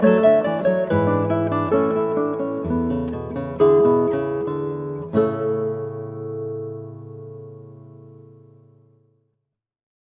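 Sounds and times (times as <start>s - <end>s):
8-string guitar playing a prelude: 0.0s - 9.2s.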